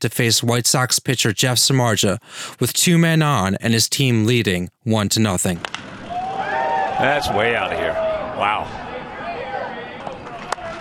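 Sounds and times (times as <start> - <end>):
speech: 0.0 - 5.8, 7.0 - 8.8
small crowd cheering: 5.7 - 10.7
sparse polite claps: 10.0 - 10.7.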